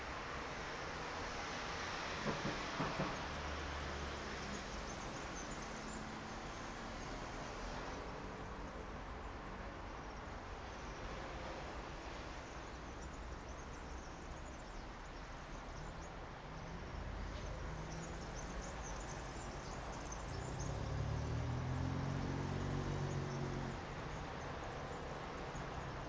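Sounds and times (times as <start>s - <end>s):
street traffic on the outskirts of Verona: 0.0s - 26.0s
vehicle passing: 20.4s - 24.0s.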